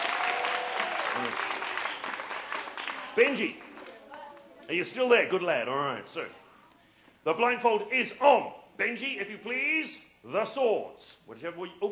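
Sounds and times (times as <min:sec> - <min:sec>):
audience clapping: 0:00.0 - 0:04.6
speech: 0:01.2 - 0:01.5, 0:03.2 - 0:03.7, 0:04.7 - 0:06.4, 0:07.2 - 0:11.9.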